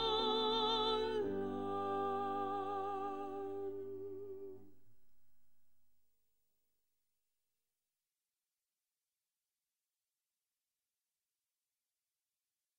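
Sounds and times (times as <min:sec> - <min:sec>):
soprano singing: 0:00.0 - 0:04.7.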